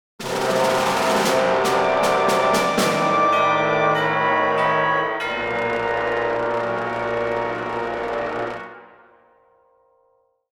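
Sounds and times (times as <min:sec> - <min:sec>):
defeat jingle: 0:00.2 - 0:08.7.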